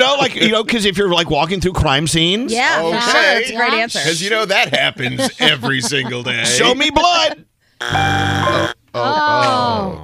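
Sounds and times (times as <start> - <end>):
speech: 0.2 - 10.0
laughter: 4.5 - 7.3
person imitating a game show wrong-answer buzzer: 7.8 - 10.0.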